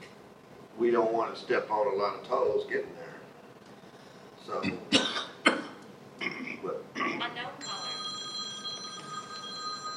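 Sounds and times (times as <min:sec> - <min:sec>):
speech: 0:00.8 - 0:03.1, 0:04.5 - 0:05.3
telephone ringing with an electronic trill: 0:07.6 - 0:09.9.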